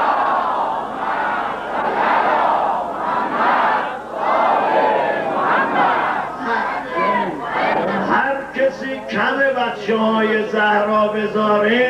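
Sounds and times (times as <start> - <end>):
large crowd chanting a salawat in unison: 0.0 - 8.2
speech: 9.1 - 11.8.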